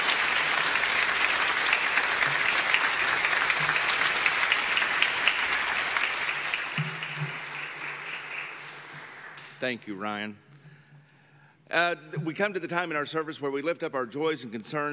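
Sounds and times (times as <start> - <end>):
audience applause: 0.0 - 9.6
speech: 9.6 - 10.5, 11.7 - 14.9.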